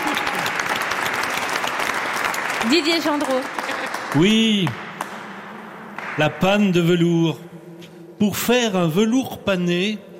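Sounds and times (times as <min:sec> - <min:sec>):
studio audience applause for a guest on a French radio show: 0:00.0 - 0:05.2
speech: 0:02.6 - 0:04.8, 0:06.2 - 0:07.5, 0:08.2 - 0:10.1.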